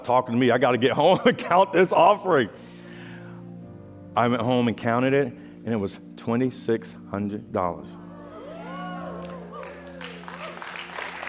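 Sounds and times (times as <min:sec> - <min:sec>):
speech: 0:00.0 - 0:02.7, 0:04.2 - 0:08.0
cheers: 0:08.1 - 0:11.2
audience clapping: 0:08.8 - 0:11.2.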